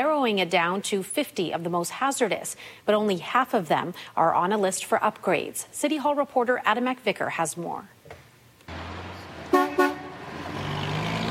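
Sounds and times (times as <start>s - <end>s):
speech: 0.0s - 8.0s
traffic at a three-way stop in Martindale: 8.7s - 11.3s.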